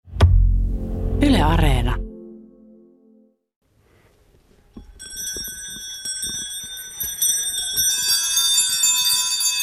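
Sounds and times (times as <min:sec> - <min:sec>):
brief low hum: 0:00.1 - 0:03.3
speech: 0:01.4 - 0:02.0
horse sleigh shaft bells jingling: 0:04.9 - 0:09.6.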